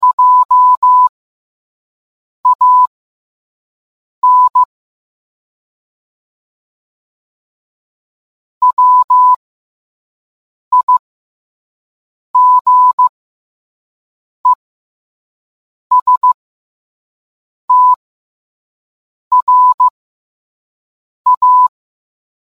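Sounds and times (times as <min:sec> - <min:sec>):
morse code beeps: 0:00.0 - 0:01.1, 0:02.5 - 0:02.9, 0:04.2 - 0:04.7, 0:08.6 - 0:09.4, 0:10.7 - 0:11.0, 0:12.4 - 0:13.1, 0:15.9 - 0:16.4, 0:17.7 - 0:18.0, 0:19.3 - 0:19.9, 0:21.3 - 0:21.7.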